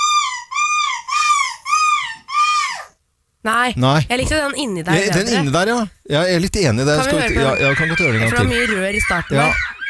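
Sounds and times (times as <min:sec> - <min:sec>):
person imitating a seagull's screech: 0:00.0 - 0:03.0, 0:07.0 - 0:09.8
speech: 0:03.4 - 0:09.8.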